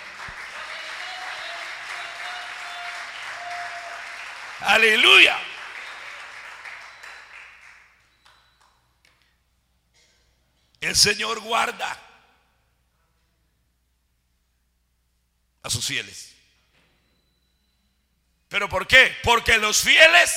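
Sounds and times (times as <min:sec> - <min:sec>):
audience applause: 0:00.0 - 0:07.9
speech: 0:04.6 - 0:05.4, 0:10.9 - 0:12.1, 0:15.6 - 0:16.4, 0:18.5 - 0:20.3.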